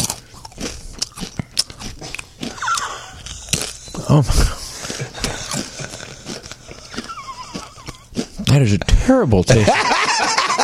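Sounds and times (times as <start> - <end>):
crunching bites into a whole Dorito chip: 0.0 - 4.2, 4.8 - 8.6
speech: 4.1 - 4.6, 8.6 - 10.6
laughter: 9.5 - 10.6.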